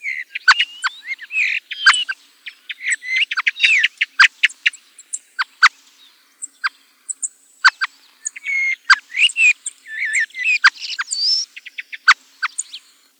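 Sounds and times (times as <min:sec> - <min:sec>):
common blackbird song of chirps, clicks and whistled slurs: 0:00.0 - 0:13.1.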